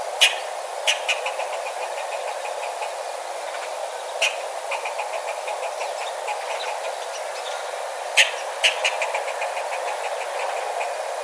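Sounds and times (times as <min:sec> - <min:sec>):
eastern red squirrel chittering: 0:00.2 - 0:11.1.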